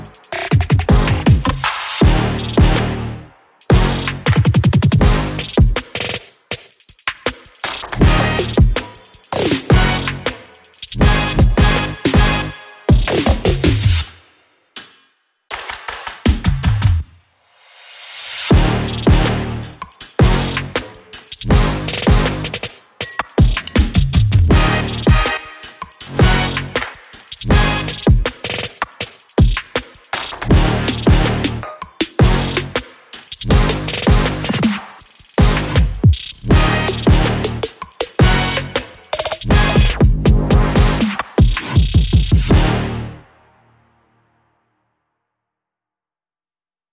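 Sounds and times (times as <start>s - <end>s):
drums: 0.0s - 3.0s, 3.6s - 42.8s
brass instruments: 0.9s - 4.4s, 5.0s - 5.6s, 7.9s - 13.8s, 18.5s - 22.8s, 24.5s - 28.4s, 30.4s - 43.8s.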